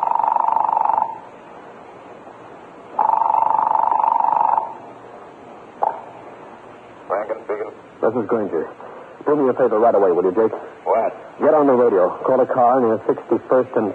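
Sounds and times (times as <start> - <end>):
telephone line buzzing at other end: 0.0 - 1.3, 3.0 - 4.8
speech: 8.1 - 10.6, 11.4 - 13.9.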